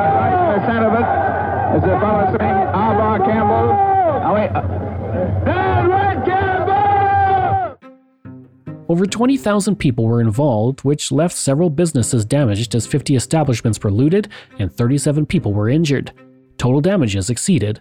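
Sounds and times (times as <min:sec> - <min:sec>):
crowd jeering and shouting at police: 0:00.0 - 0:07.8
low rumble: 0:00.7 - 0:06.7
speech: 0:01.7 - 0:06.3, 0:08.9 - 0:17.7.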